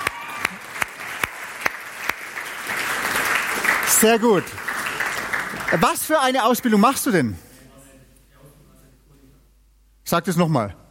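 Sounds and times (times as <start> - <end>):
audience applause: 0.0 - 7.0
speech: 4.0 - 4.7, 5.7 - 7.5, 10.1 - 10.8.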